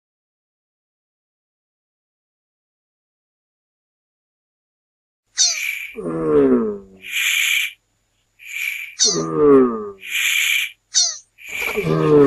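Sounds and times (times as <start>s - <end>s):
turtle giving hoarse harmonic grunts: 5.7s - 7.8s, 8.4s - 10.7s, 11.4s - 12.2s.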